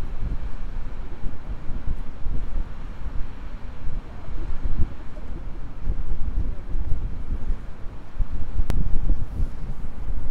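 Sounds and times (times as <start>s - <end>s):
Gullfoss waterfall in Iceland: 0.0s - 10.3s
wind at Gullfoss waterfall in Iceland: 0.0s - 10.3s.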